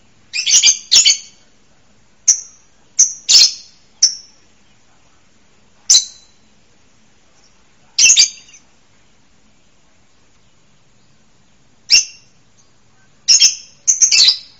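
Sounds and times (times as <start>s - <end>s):
bird chirping: 0.3s - 1.4s, 2.3s - 4.8s, 5.9s - 6.6s, 7.4s - 8.7s, 10.3s - 14.5s.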